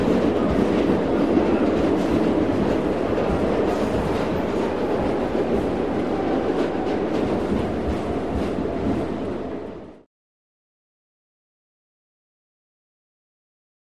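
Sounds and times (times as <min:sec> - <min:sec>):
old subway interior: 0:00.0 - 0:10.1.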